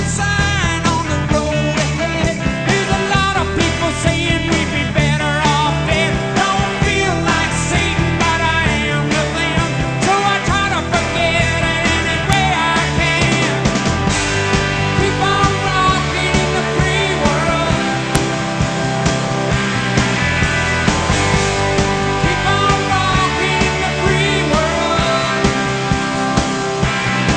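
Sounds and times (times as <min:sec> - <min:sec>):
rock music: 0:00.0 - 0:27.3.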